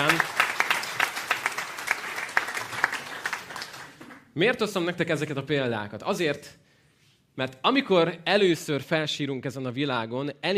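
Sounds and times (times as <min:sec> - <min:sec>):
audience applause: 0:00.0 - 0:04.2
speech: 0:04.4 - 0:06.6, 0:07.4 - 0:10.5.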